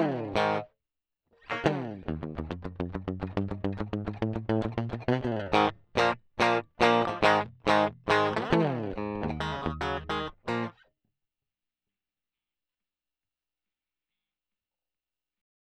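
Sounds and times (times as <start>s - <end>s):
crunchy blues music: 1.5s - 10.7s.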